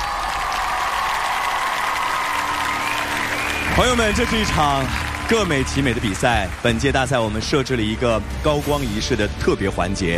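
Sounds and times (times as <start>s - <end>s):
audience applause: 0.0s - 7.6s
speech: 3.8s - 10.1s.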